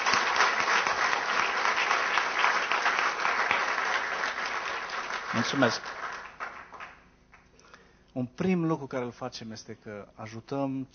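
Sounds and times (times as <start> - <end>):
crowd clapping: 0.0 - 7.6
speech: 5.3 - 6.0, 8.2 - 10.9.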